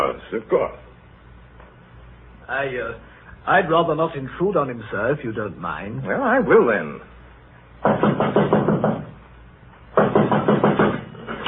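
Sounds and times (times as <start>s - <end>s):
speech: 0.3s - 0.8s, 2.5s - 7.1s, 7.8s - 8.6s
rapid firm knocking on a locked door: 7.8s - 9.2s, 9.9s - 11.1s.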